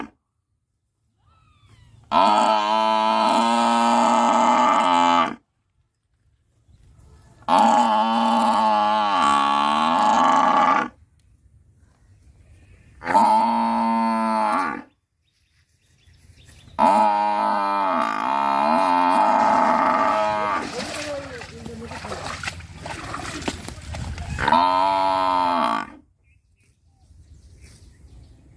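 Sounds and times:
buffalo: 1.2s - 5.5s, 6.2s - 11.0s, 11.8s - 15.0s, 16.4s - 26.1s.

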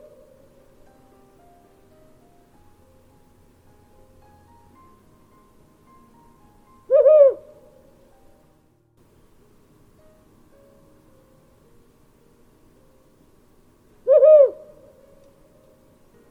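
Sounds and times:
calm night forest ambience: 0.0s - 16.2s
mystical owl hooting in a calm night forest: 6.9s - 7.9s, 14.0s - 15.1s.

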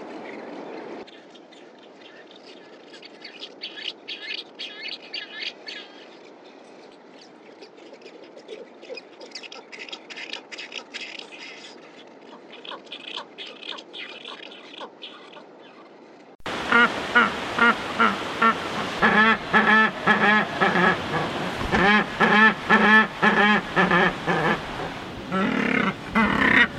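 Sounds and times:
penguin calling: 16.8s - 26.7s.

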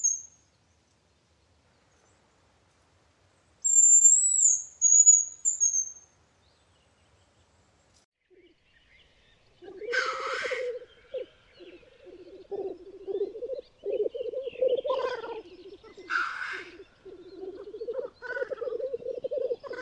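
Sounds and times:
grouse calling: 9.6s - 19.8s.

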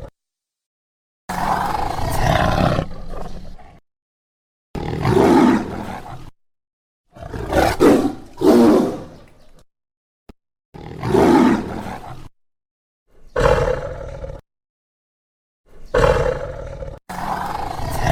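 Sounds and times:
tiger roaring: 1.3s - 3.8s, 4.8s - 6.3s, 7.1s - 9.2s, 10.8s - 12.3s, 13.3s - 14.4s, 15.8s - 18.1s.

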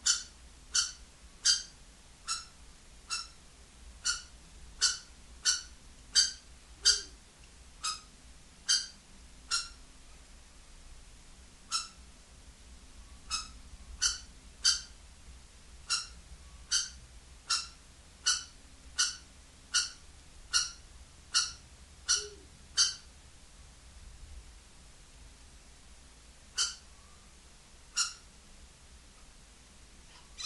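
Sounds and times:
kestrel calls: 0.0s - 3.4s, 4.0s - 7.2s, 7.8s - 8.1s, 8.7s - 9.8s, 11.7s - 12.0s, 13.3s - 15.0s, 15.9s - 23.1s, 26.6s - 27.2s, 27.9s - 28.3s, 30.1s - 30.4s
faint low hum: 0.0s - 30.4s.

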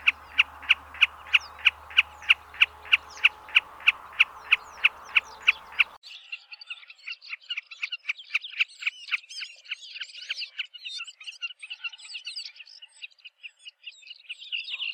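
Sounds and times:
snipe calling: 0.0s - 6.0s.

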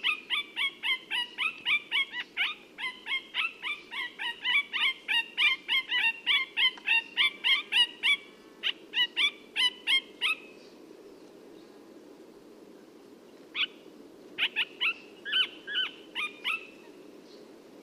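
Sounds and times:
parakeet calls: 0.0s - 10.5s, 13.5s - 13.8s, 14.4s - 16.9s.

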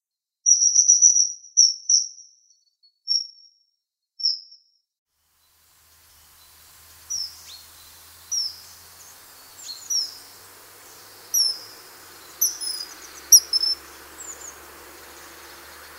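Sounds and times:
birds chirping and calling: 5.3s - 15.9s.

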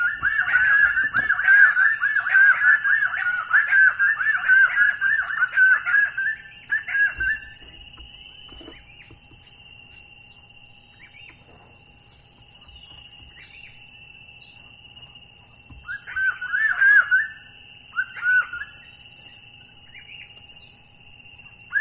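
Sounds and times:
common quail three-syllable calls: 0.0s - 7.8s, 15.8s - 18.9s.

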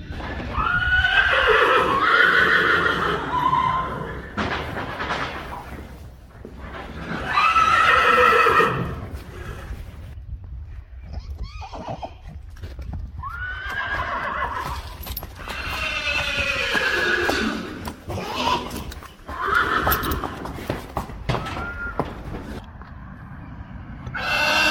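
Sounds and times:
majestic horse neighing: 0.1s - 4.4s, 6.8s - 9.8s, 13.2s - 20.6s, 24.1s - 24.6s.

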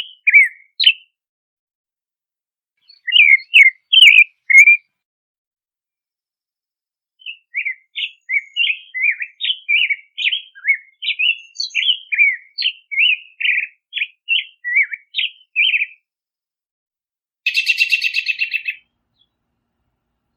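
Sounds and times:
American robin: 0.0s - 1.2s, 2.8s - 5.0s, 7.2s - 16.1s, 17.5s - 20.3s.

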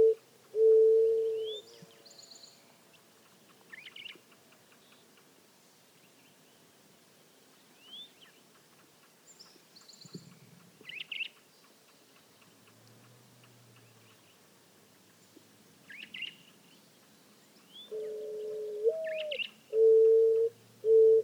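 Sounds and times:
mourning dove cooing: 0.0s - 2.1s, 17.9s - 21.2s.

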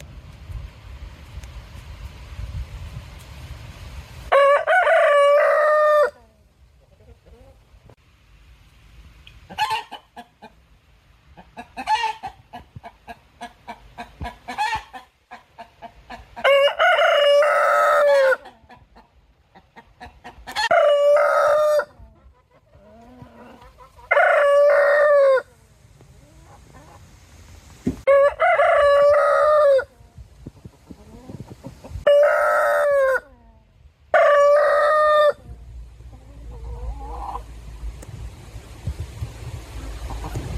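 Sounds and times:
rooster crowing: 4.3s - 6.2s, 16.4s - 18.4s, 20.6s - 22.0s, 24.1s - 25.5s, 28.1s - 29.9s, 32.0s - 33.3s, 34.1s - 35.4s.

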